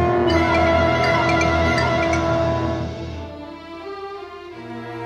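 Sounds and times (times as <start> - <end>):
active suspense music: 0.1 - 3.5.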